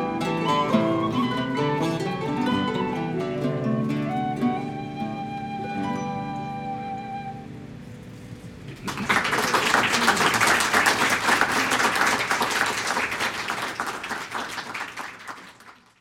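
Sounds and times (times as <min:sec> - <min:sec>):
harp: 0:00.0 - 0:08.7
laughter: 0:08.7 - 0:13.8.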